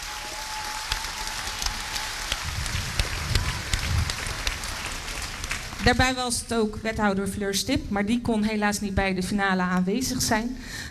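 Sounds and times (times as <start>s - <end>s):
applause: 0.0s - 6.0s
speech: 5.8s - 10.8s.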